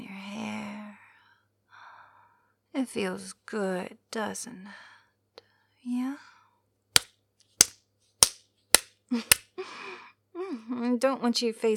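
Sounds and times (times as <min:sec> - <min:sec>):
speech: 0:02.8 - 0:04.9, 0:05.8 - 0:06.3, 0:09.1 - 0:09.7, 0:10.5 - 0:11.7
sharp slaps: 0:07.0 - 0:09.4.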